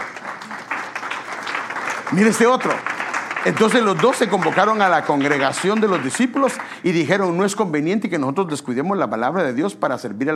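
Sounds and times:
audience applause: 0:00.0 - 0:07.6
speech: 0:02.1 - 0:10.3.

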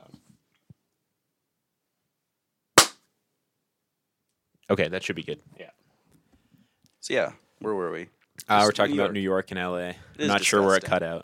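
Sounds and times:
hand clap for audio sync: 0:02.8 - 0:03.0
speech: 0:04.7 - 0:05.8, 0:07.1 - 0:11.2.

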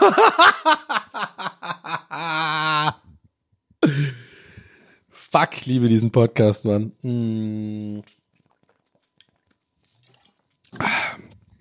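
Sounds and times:
laughter: 0:00.0 - 0:03.0
speech: 0:00.1 - 0:00.5, 0:05.6 - 0:07.4
slurping sip of Coca-Cola Zero: 0:08.0 - 0:11.6.

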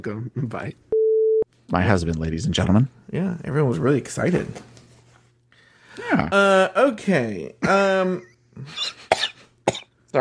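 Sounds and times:
speech: 0:00.0 - 0:00.9, 0:01.7 - 0:04.8, 0:06.2 - 0:10.1
cough: 0:09.0 - 0:10.0.

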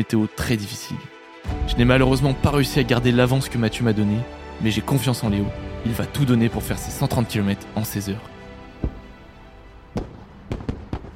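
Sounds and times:
speech: 0:00.0 - 0:01.1, 0:01.7 - 0:08.4
firework mortar shots booming: 0:08.8 - 0:09.2, 0:09.9 - 0:11.1.

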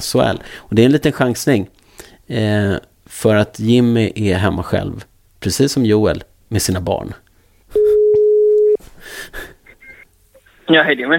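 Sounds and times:
speech: 0:00.0 - 0:07.2, 0:10.7 - 0:11.1
telephone ringback tone: 0:07.8 - 0:08.8.

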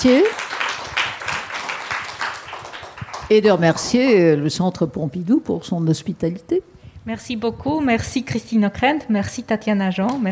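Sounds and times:
speech: 0:00.0 - 0:00.4, 0:03.3 - 0:10.3
audience applause: 0:00.1 - 0:03.3.

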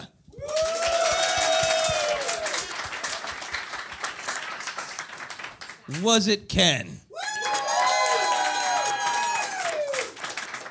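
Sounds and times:
audience applause: 0:00.0 - 0:06.1, 0:07.2 - 0:10.7
whistle or whooping cheer: 0:00.3 - 0:02.7, 0:07.2 - 0:10.2
speech: 0:05.9 - 0:07.0.

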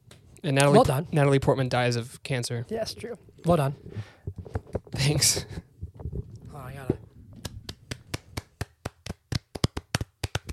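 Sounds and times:
speech: 0:00.4 - 0:05.7
hand clapping: 0:07.4 - 0:10.5.

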